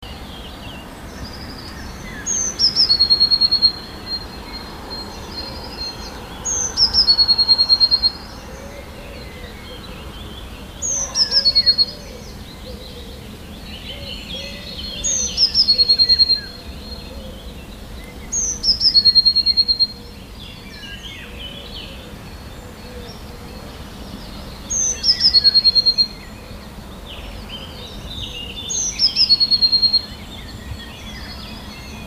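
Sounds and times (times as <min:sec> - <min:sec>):
Eurasian blue tit singing: 0:00.0 - 0:32.0
faint twittering of other small birds: 0:00.0 - 0:32.0.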